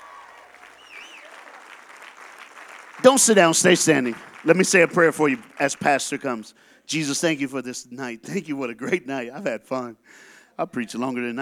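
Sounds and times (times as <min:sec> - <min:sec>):
congregation clapping at a church service after a worship song: 0:00.0 - 0:06.5
speech: 0:03.0 - 0:11.4.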